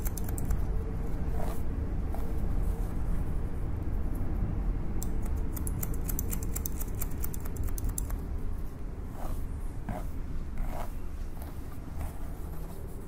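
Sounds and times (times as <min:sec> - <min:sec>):
steady low rumble: 0:00.0 - 0:13.0
scissors cutting: 0:05.0 - 0:08.2.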